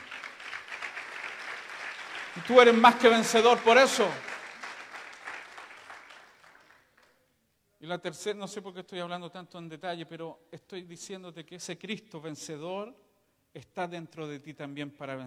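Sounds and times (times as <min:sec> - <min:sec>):
audience applause: 0:00.0 - 0:07.1
speech: 0:02.4 - 0:04.3, 0:07.9 - 0:15.2.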